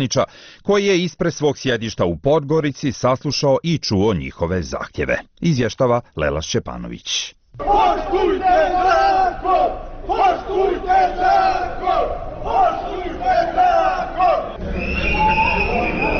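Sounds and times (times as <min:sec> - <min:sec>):
speech: 0:00.0 - 0:14.6
pensioners chanting during protest march: 0:07.6 - 0:14.7
sirens: 0:12.4 - 0:16.1
whistles blowing: 0:14.5 - 0:16.1.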